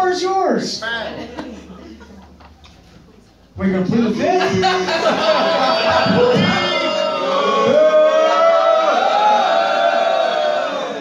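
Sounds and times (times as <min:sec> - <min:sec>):
speech: 0:00.2 - 0:01.4, 0:03.6 - 0:06.6
laughter: 0:00.9 - 0:02.9, 0:04.2 - 0:07.5
crowd booing: 0:04.8 - 0:10.9.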